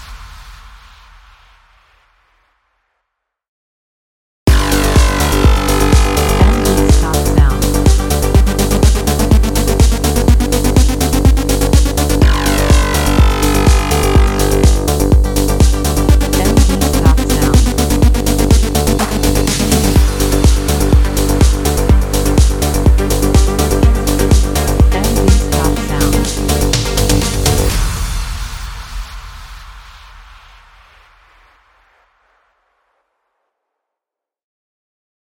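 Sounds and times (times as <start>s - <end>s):
pulse engine: 4.5s - 28.7s.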